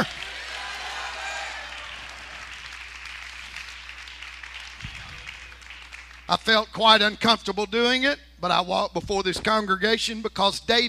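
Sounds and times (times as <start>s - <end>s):
audience clapping: 0.0s - 6.6s
speech: 6.3s - 10.8s.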